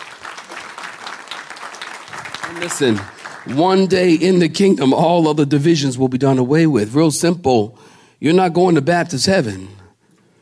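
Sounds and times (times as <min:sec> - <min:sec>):
audience clapping hands: 0:00.0 - 0:04.5
speech: 0:02.5 - 0:09.8.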